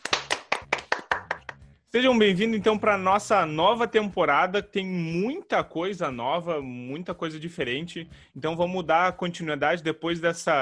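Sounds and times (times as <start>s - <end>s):
applause: 0.0s - 1.6s
speech: 1.9s - 10.5s.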